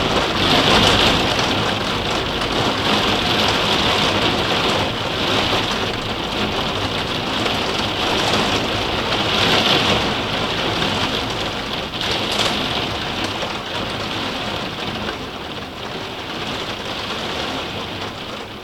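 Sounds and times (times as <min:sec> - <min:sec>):
rain on an attic window: 0:00.0 - 0:18.6.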